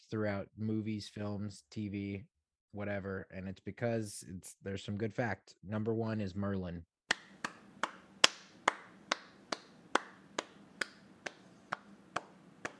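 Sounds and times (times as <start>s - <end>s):
speech: 0.1s - 6.9s
single person clapping: 7.1s - 12.7s.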